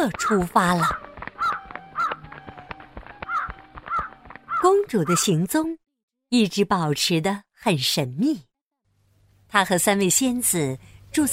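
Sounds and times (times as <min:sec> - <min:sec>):
speech: 0:00.0 - 0:01.0, 0:04.6 - 0:08.5, 0:09.5 - 0:11.3
crow cawing: 0:00.2 - 0:05.3.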